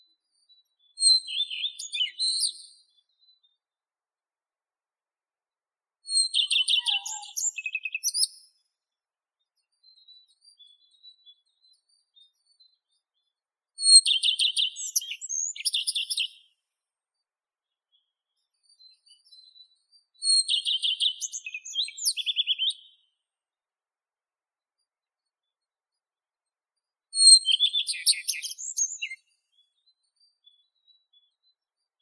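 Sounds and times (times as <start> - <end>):
common redstart Phoenicurus phoenicurus calling: 1.0 - 2.7, 6.1 - 8.4, 13.8 - 16.4, 20.2 - 22.9, 27.2 - 29.2.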